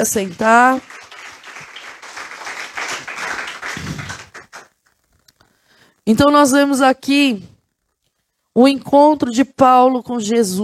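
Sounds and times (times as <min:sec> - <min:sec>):
speech: 0:00.0 - 0:01.0, 0:06.1 - 0:07.5, 0:08.6 - 0:10.6
audience applauding: 0:00.0 - 0:04.7.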